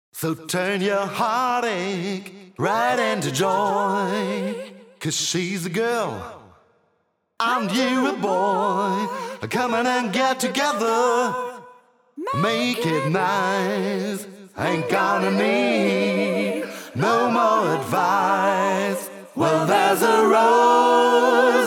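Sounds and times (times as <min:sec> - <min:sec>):
a cappella singing: 0:00.2 - 0:06.4, 0:07.4 - 0:21.6.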